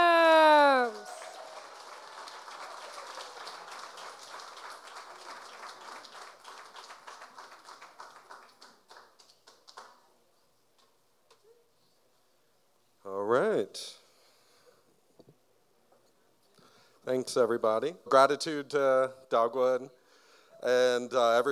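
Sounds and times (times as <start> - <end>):
audience applause: 0.0 - 10.0
speech: 17.1 - 20.0, 20.6 - 21.4.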